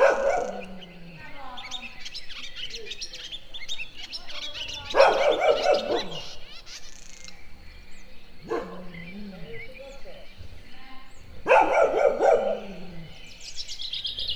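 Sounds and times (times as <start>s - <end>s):
dog barking in nature: 0.0s - 1.4s, 4.8s - 6.5s, 8.4s - 9.6s, 11.4s - 13.3s
sand martin calling in nature: 0.0s - 14.3s.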